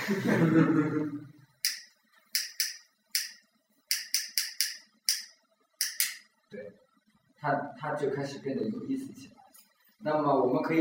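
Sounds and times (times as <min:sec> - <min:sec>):
laughter: 0:00.0 - 0:01.3
speech: 0:00.1 - 0:01.4, 0:07.4 - 0:09.4, 0:10.0 - 0:10.7
lighter flicked repeatedly: 0:01.6 - 0:06.2.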